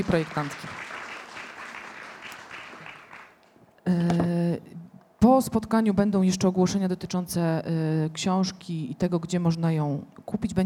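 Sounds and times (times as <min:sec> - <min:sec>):
speech: 0:00.0 - 0:00.8, 0:03.9 - 0:10.6
audience applause: 0:00.0 - 0:03.5.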